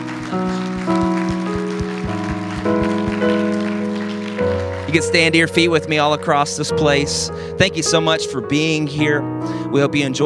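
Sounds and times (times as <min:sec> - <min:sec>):
audience clapping hands: 0:00.0 - 0:06.2
speech: 0:00.3 - 0:00.7, 0:04.9 - 0:10.2.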